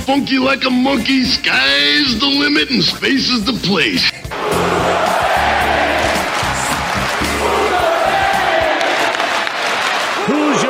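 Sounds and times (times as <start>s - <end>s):
speech: 0.1s - 5.1s
large audience cheering sound effect: 4.3s - 10.6s.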